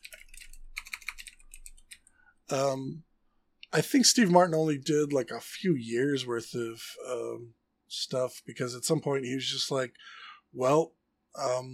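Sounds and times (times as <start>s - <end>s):
fast typing on a computer keyboard while writing down a list: 0.0s - 2.1s
speech: 2.5s - 3.1s, 3.7s - 11.7s.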